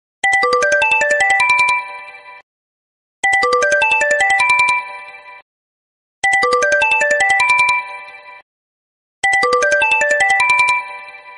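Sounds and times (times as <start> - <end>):
Sony Ericsson ringtone: 0.2 - 2.1, 3.2 - 5.1, 6.2 - 8.0, 9.2 - 11.3.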